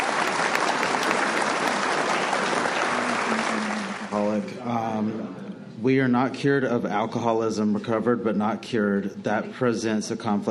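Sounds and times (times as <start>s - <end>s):
audience at a recovery meeting applauding: 0.0s - 4.4s
speech: 4.6s - 10.4s.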